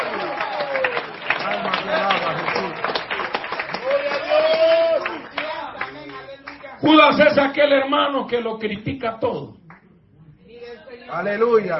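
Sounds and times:
audience clapping: 0.0 - 7.4
speech: 6.8 - 9.6, 11.1 - 11.7.

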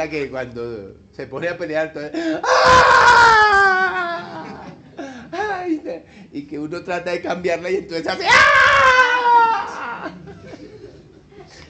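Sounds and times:
speech: 0.0 - 4.6, 5.8 - 10.2
voice imitating a crying child: 2.4 - 4.7, 8.2 - 10.1
laughter: 3.7 - 5.8, 9.4 - 11.6.

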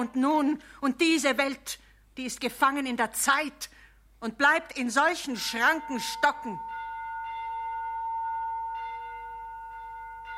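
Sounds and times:
speech: 0.0 - 6.7
bells ringing: 5.3 - 10.3.

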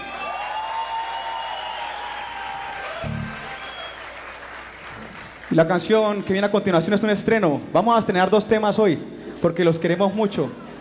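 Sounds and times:
audience applause: 0.0 - 6.3
speech: 5.5 - 10.6.

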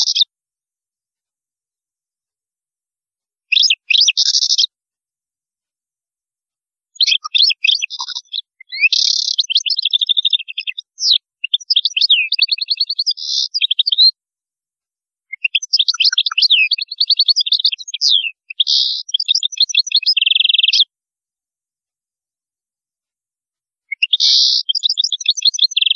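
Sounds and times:
European goldfinch twittering song: 0.0 - 0.3, 3.5 - 4.7, 6.9 - 14.2, 15.3 - 20.9, 23.9 - 25.9.

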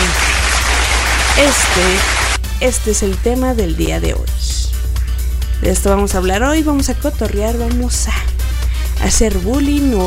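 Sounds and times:
applause sound effect: 0.0 - 2.4
speech: 1.4 - 4.6, 5.6 - 8.3, 9.0 - 10.0.

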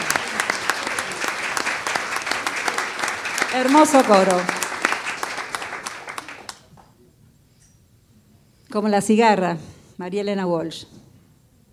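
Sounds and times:
audience applause for a choir: 0.0 - 6.8
speech: 3.5 - 4.6, 8.7 - 11.0.

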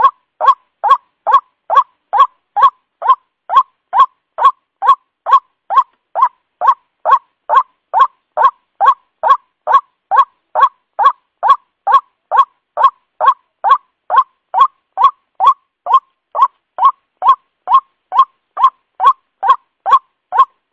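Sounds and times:
white-breasted waterhen lure call of nasal upward-inflected notes: 0.0 - 20.6.

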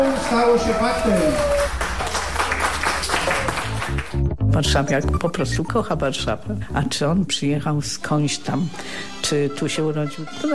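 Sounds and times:
speech: 0.0 - 1.6, 4.5 - 10.5
audience applause greeting the opening of the Museum of Jars of the World: 0.0 - 4.2.

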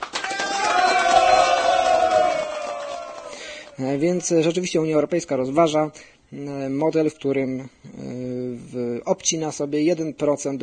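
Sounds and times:
crowd cheering applause sound effect: 0.0 - 4.3
speech: 3.8 - 10.6.

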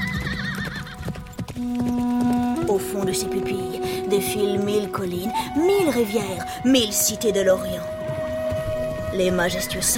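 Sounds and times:
horse neighing: 0.0 - 2.7
horse galloping: 0.0 - 9.9
speech: 1.6 - 8.0, 9.2 - 9.9.

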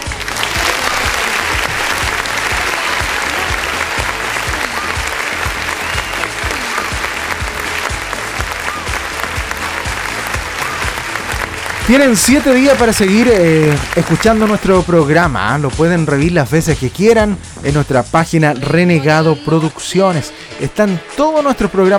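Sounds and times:
studio audience applause with many hands clapping: 0.0 - 15.1
speech: 11.9 - 21.9.

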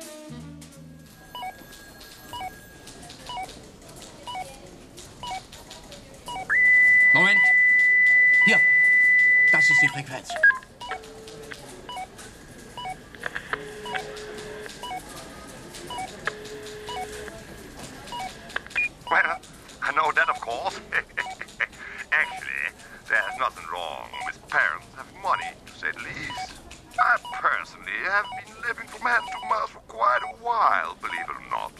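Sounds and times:
radio scanner beeping while searching frequencies: 6.3 - 12.2, 12.8 - 15.1, 15.9 - 17.4, 18.1 - 31.7.

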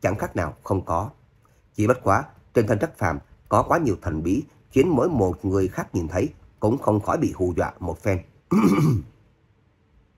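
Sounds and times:
speech: 0.0 - 1.2, 1.8 - 9.1
soft cough: 8.5 - 9.2.

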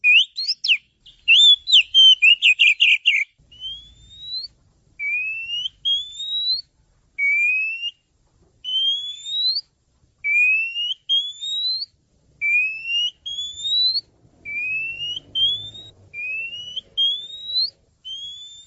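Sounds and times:
oriental magpie-robin song: 0.0 - 8.0, 8.6 - 9.6, 10.2 - 18.6.

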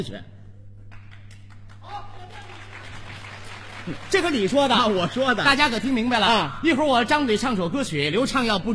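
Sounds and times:
speech: 0.0 - 0.4, 3.9 - 8.7
audience applause: 0.9 - 6.4.

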